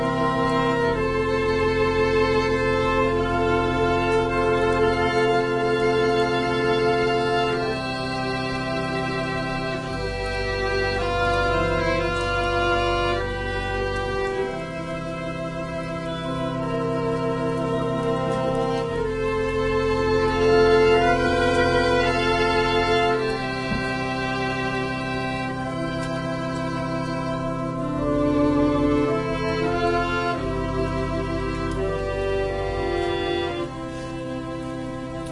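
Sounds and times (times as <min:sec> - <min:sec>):
organ playing a prelude: 0:00.0 - 0:35.3
violin playing a prelude: 0:00.0 - 0:35.3.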